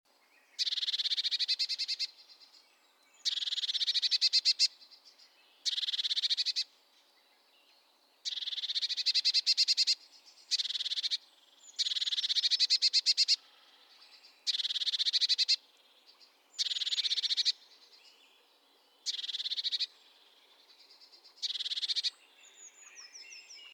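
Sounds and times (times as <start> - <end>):
Eurasian blue tit churring: 0.6 - 2.2, 3.2 - 4.7, 5.6 - 6.7, 8.2 - 13.4, 14.4 - 15.6, 16.6 - 17.6, 19.0 - 19.9, 21.4 - 22.2.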